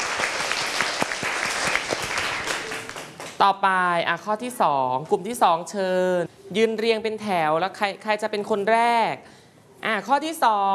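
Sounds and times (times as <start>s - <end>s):
classroom group applauding: 0.0s - 3.4s
speech: 3.4s - 10.7s.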